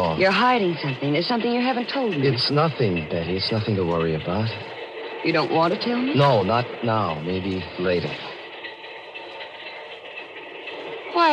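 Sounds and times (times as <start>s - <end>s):
moving passenger train interior hiss and rumble: 0.0s - 11.3s
speech: 0.2s - 8.3s.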